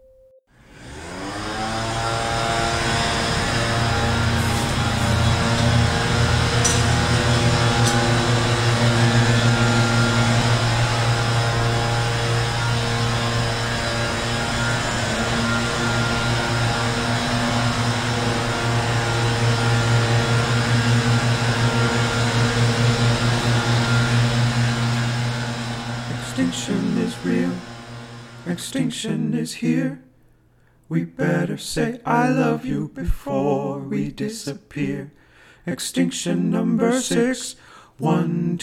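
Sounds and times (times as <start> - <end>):
California leaf blower running: 0.6 - 28.8
speech: 29.4 - 30.1, 30.9 - 38.6.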